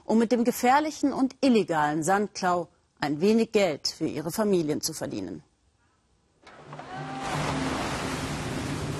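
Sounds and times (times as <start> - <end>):
speech: 0.1 - 5.5
stormy sea waves crashing on the beach: 6.7 - 8.9.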